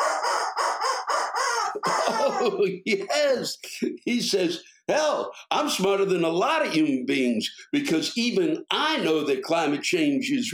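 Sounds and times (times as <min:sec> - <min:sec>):
rubber chicken squawking: 0:00.0 - 0:02.7
laughter: 0:01.8 - 0:04.2
speech: 0:01.8 - 0:10.5.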